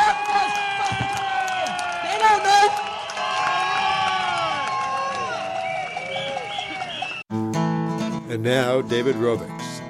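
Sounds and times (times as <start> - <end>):
audience clapping: 0.0 - 7.2
large audience cheering with shouting and whoops: 0.0 - 7.2
high whistles: 5.3 - 7.2
speech: 8.4 - 9.6.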